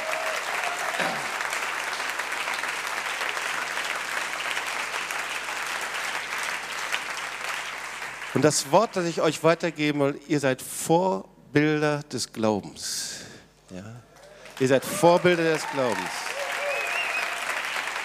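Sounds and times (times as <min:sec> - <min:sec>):
audience applause: 0:00.0 - 0:09.1, 0:14.3 - 0:18.0
speech: 0:08.4 - 0:16.3.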